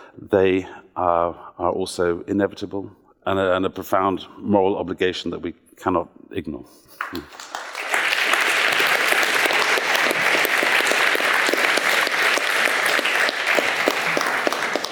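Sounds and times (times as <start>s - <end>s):
speech: 0.3s - 7.6s
audience applause: 7.0s - 14.9s.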